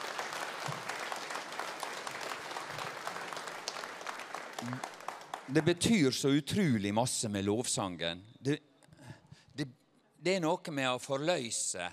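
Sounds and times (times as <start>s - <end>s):
audience applause: 0.0s - 5.9s
speech: 4.6s - 4.9s, 5.5s - 8.7s, 9.6s - 11.9s.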